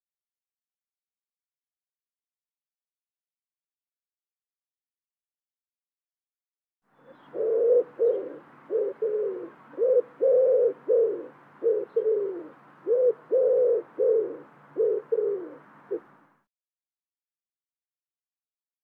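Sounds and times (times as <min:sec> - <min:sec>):
bird cooing: 0:07.0 - 0:16.2.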